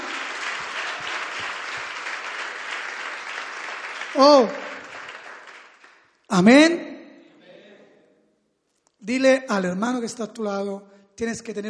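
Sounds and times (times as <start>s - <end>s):
audience applause: 0.0s - 6.1s
speech: 4.2s - 4.7s, 6.3s - 6.9s, 9.1s - 11.6s.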